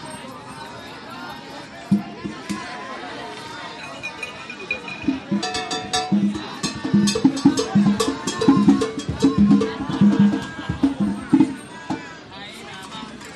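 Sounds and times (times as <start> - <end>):
Central Park festival drums: 1.8 - 3.1, 3.8 - 12.3.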